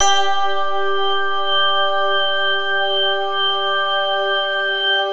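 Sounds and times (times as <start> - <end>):
G3 bell drone: 0.0 - 5.0.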